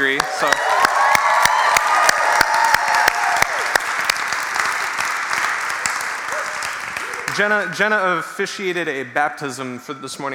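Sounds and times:
speech: 0.0 - 0.8, 7.4 - 10.3
church congregation clapping for an intern's seminary graduation: 0.0 - 8.1.

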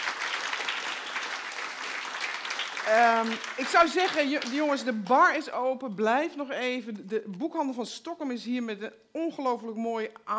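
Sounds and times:
audience applause: 0.0 - 4.6
speech: 2.8 - 10.3.

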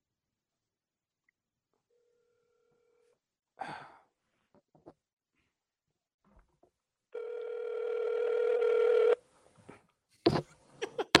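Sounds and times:
soft sigh: 3.6 - 4.1
telephone ringback tone on speaker: 7.2 - 9.2.

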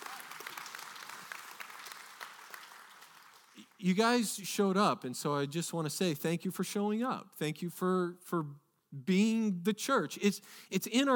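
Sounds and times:
audience clapping: 0.0 - 4.0
speech: 3.8 - 11.1.

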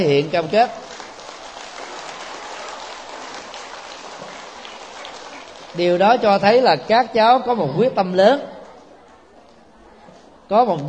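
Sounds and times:
speech: 0.0 - 0.9, 5.8 - 8.5, 10.5 - 10.8
children applauding: 0.0 - 6.6.

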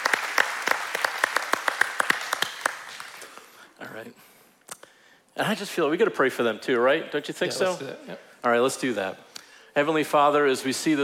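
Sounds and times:
audience applause: 0.0 - 3.4
speech: 4.0 - 4.4, 5.4 - 11.0.

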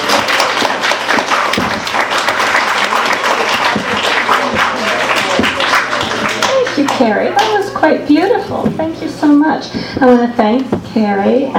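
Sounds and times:
audience applause: 0.0 - 7.6
speech: 7.0 - 11.5.

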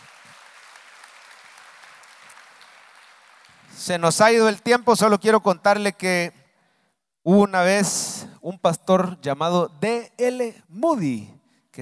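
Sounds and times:
audience applause: 0.0 - 3.8
speech: 3.8 - 6.4, 7.2 - 11.8.

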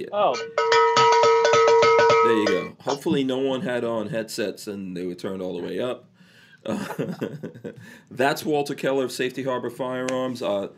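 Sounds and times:
speech: 0.0 - 0.9, 1.8 - 10.7
bell ringing: 0.3 - 3.0
laughter: 6.7 - 7.9.

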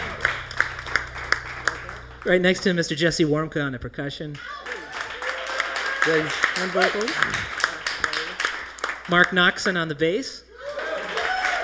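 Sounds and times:
single person clapping hands: 0.0 - 2.3, 4.4 - 9.7
low constant hum: 0.0 - 11.6
speech: 2.2 - 4.6, 6.0 - 7.6, 9.1 - 10.4.

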